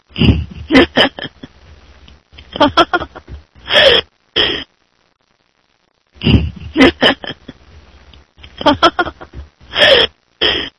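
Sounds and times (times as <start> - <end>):
person laughing: 0.1 - 1.6, 2.4 - 4.6, 6.2 - 7.7, 8.4 - 10.7.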